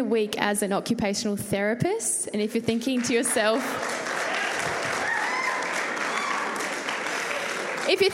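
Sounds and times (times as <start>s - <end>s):
speech: 0.0s - 4.8s, 7.9s - 8.1s
audience applause: 3.0s - 8.1s.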